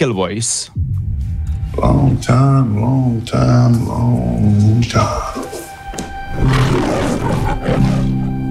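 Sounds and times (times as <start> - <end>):
speech: 0.0 - 1.0, 1.7 - 5.4, 6.4 - 8.2
MGM lion roar logo sound: 6.3 - 8.4.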